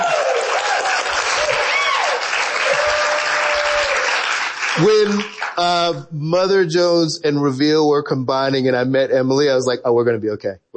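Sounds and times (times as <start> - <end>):
audience applause: 0.0 - 5.6
speech: 4.8 - 10.7.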